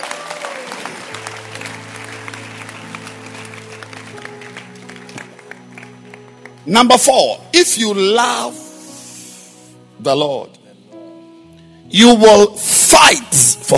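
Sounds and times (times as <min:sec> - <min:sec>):
crowd clapping: 0:00.0 - 0:07.1
keyboard or organ chords: 0:01.1 - 0:13.7
speech: 0:06.6 - 0:08.6, 0:10.0 - 0:10.6, 0:11.9 - 0:13.7.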